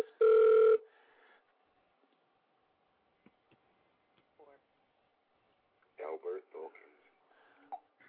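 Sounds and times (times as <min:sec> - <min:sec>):
phone ringing: 0:00.0 - 0:00.8.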